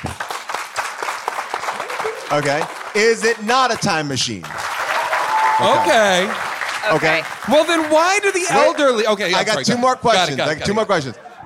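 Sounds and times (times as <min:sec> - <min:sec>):
live audience applause: 0:00.0 - 0:09.4
speech: 0:02.3 - 0:04.6, 0:05.6 - 0:11.2
faint crowd noise: 0:05.4 - 0:11.4.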